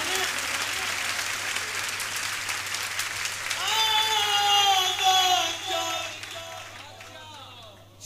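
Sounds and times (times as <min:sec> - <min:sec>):
crowd clapping: 0:00.0 - 0:07.8
person singing or calling out: 0:03.6 - 0:06.6.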